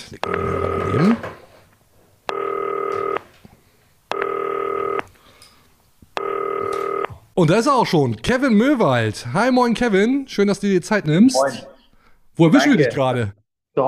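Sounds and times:
speech: 0.1 - 1.3, 7.4 - 11.7, 12.4 - 13.8
FaceTime call ringing: 0.2 - 1.3, 2.3 - 3.2, 4.1 - 5.0, 6.2 - 7.2.

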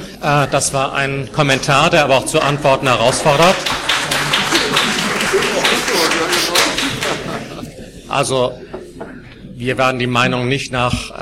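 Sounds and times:
murmuring voices: 0.0 - 11.2
speech: 0.2 - 3.8, 8.2 - 8.7, 9.6 - 11.2
laughter: 0.2 - 9.0
crowd applause: 1.2 - 8.0.

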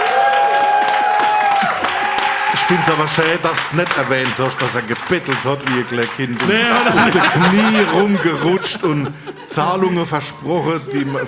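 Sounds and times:
audience applause for a band's bassist: 0.0 - 7.8
laughter: 1.6 - 11.2
speech: 2.7 - 11.2.

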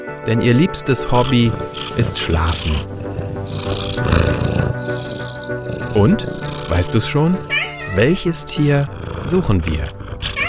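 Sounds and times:
speech: 0.2 - 3.0, 6.0 - 10.0
cat: 1.1 - 6.8, 7.4 - 8.2, 8.9 - 10.4.

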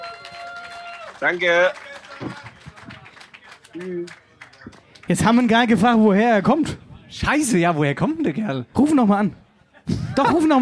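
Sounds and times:
audience applause: 0.0 - 5.8
crowd cheering: 0.0 - 6.7
speech: 1.2 - 2.4, 3.8 - 4.2, 5.1 - 10.6
laughter: 9.7 - 10.6.

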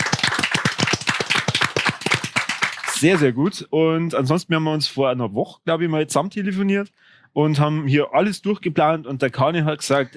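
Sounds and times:
rhythmic applause: 0.0 - 3.3
speech: 3.0 - 10.1.

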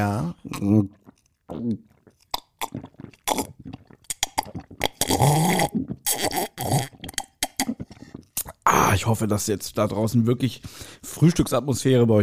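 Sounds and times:
speech: 0.0 - 1.0, 9.1 - 12.2
person gulping and slurping cocoa made with Suchard Express powder: 0.0 - 9.4.

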